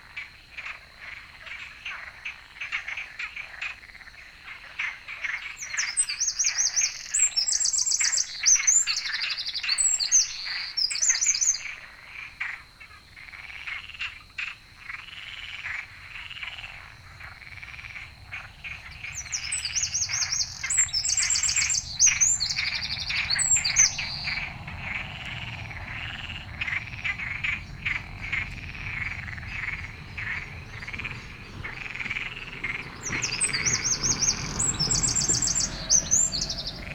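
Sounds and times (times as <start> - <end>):
frogs croaking: 0.0 - 36.9
Eurasian wren singing: 16.4 - 36.9.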